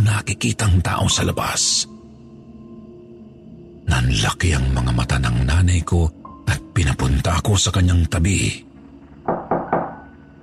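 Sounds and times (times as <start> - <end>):
speech: 0.1 - 2.0, 3.9 - 8.7
knocking: 9.0 - 10.3.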